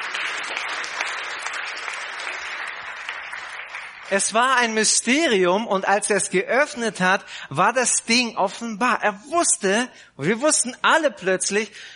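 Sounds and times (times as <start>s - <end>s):
audience applause: 0.0s - 4.6s
speech: 4.1s - 11.9s.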